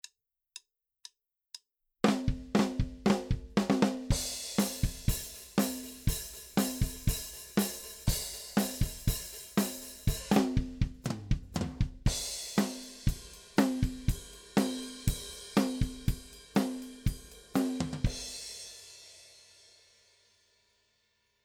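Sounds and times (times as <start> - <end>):
unprocessed drumbeat with bass drum mic: 2.0 - 18.4.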